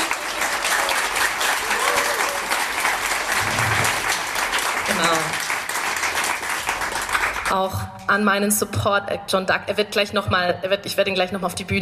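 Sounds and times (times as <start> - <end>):
faint cheer: 0.0 - 4.2
audience applause: 0.0 - 7.6
speech: 7.5 - 11.8.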